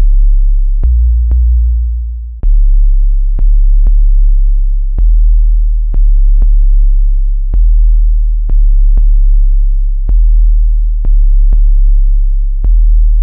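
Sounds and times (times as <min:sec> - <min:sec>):
bass sequence: 0:00.0 - 0:13.2.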